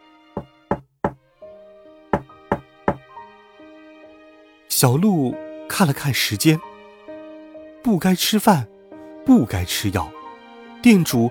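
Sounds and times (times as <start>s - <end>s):
sharp solid knocks on a door: 0.4s - 1.2s, 2.2s - 3.1s
speech: 4.7s - 6.7s, 7.8s - 10.2s, 10.8s - 11.3s.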